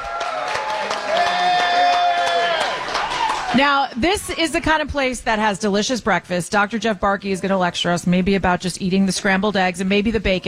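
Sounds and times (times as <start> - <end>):
high whistle or cheer: 0.0 - 3.6
crowd applause: 0.0 - 3.8
speech: 3.5 - 10.4.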